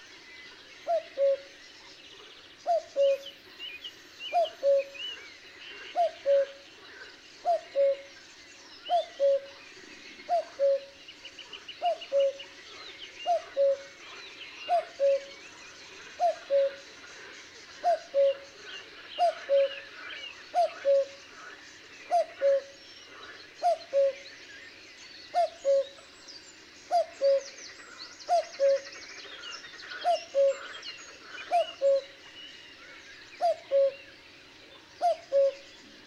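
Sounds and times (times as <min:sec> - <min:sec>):
birds twittering: 0:00.0 - 0:36.0
cuckoo calling: 0:00.8 - 0:01.6, 0:02.6 - 0:03.4, 0:04.3 - 0:05.2, 0:05.9 - 0:06.6, 0:07.4 - 0:08.1, 0:08.9 - 0:09.6, 0:10.3 - 0:11.0, 0:11.8 - 0:12.5, 0:13.2 - 0:14.0, 0:14.7 - 0:15.4, 0:16.2 - 0:16.8, 0:17.8 - 0:18.5, 0:19.2 - 0:19.9, 0:20.5 - 0:21.2, 0:22.1 - 0:22.8, 0:23.6 - 0:24.2, 0:25.3 - 0:26.0, 0:26.9 - 0:27.6, 0:28.3 - 0:28.9, 0:30.0 - 0:30.7, 0:31.5 - 0:32.1, 0:33.4 - 0:34.1, 0:35.0 - 0:35.7.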